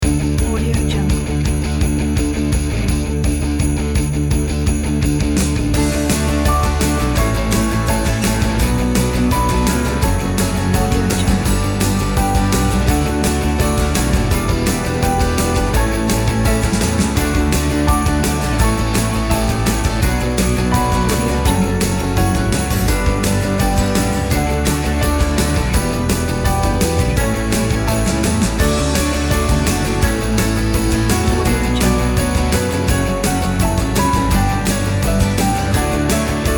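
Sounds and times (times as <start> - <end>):
rock and roll music: 0.0 - 36.5.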